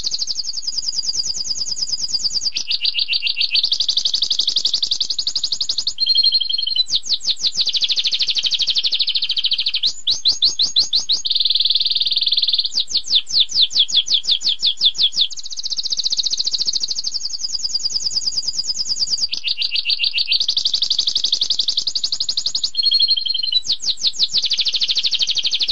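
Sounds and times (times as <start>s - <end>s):
canary song: 2.4s - 4.9s, 5.8s - 17.1s, 19.1s - 20.7s, 21.3s - 25.7s.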